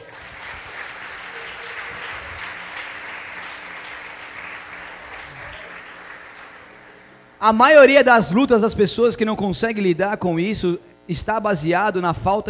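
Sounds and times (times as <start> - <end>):
audience applauding: 0.0 - 7.3
speech: 7.4 - 12.4.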